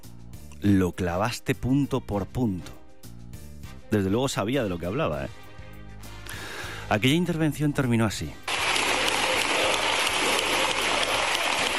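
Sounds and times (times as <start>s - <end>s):
speech: 0.6s - 2.8s, 3.9s - 5.4s, 6.9s - 8.4s
sustained applause from a large group in a parliamentary chamber: 8.5s - 11.7s.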